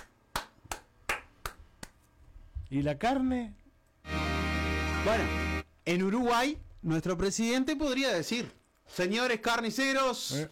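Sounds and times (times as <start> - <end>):
sharp hand claps: 0.0 - 2.1
speech: 2.7 - 3.6, 5.0 - 10.5.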